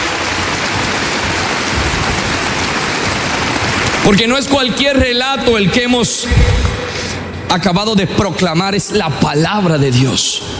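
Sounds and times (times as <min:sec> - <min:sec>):
audience applauding: 0:00.0 - 0:05.2
speech: 0:04.1 - 0:10.5.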